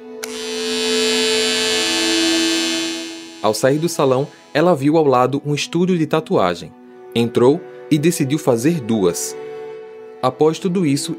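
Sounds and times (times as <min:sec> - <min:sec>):
electric hair clippers shaving a head: 0:00.2 - 0:04.7
speech: 0:03.4 - 0:09.5, 0:10.2 - 0:11.1.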